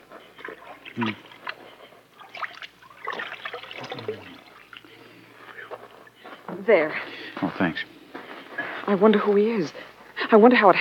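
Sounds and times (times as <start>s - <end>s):
water dabbed onto a bullet wound in a man's chest: 0.3s - 5.0s
speech: 1.0s - 1.3s, 6.7s - 8.0s, 8.9s - 10.7s.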